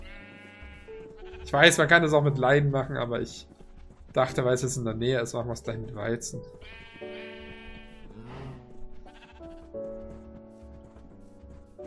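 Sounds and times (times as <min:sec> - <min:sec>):
sheep bleating in a video game: 0:00.0 - 0:02.0, 0:06.6 - 0:09.6
video game music: 0:00.0 - 0:11.8
speech: 0:01.2 - 0:03.5, 0:04.2 - 0:06.8.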